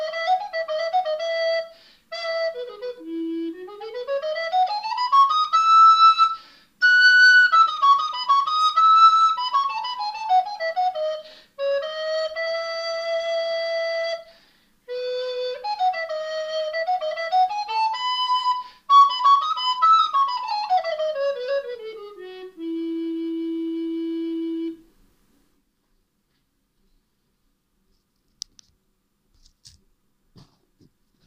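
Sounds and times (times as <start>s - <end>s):
alto instrument tuned to 415Hz: 0.0s - 14.3s, 14.9s - 25.0s.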